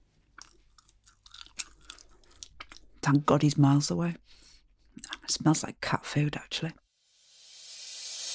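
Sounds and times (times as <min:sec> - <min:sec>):
chewing fish paste: 0:00.3 - 0:03.0
speech: 0:03.0 - 0:04.4, 0:05.3 - 0:06.8.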